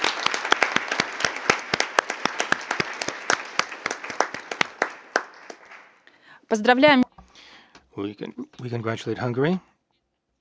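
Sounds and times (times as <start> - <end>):
applause at a meeting of parties to a protocol approving Hungary's election: 0.0 - 6.1
speech: 6.5 - 7.0, 8.0 - 9.7.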